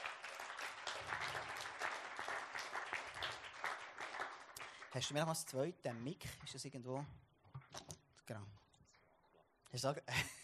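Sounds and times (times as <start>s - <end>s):
crowd applause: 0.0s - 5.2s
speech: 4.9s - 7.3s, 8.3s - 8.6s, 9.7s - 10.4s.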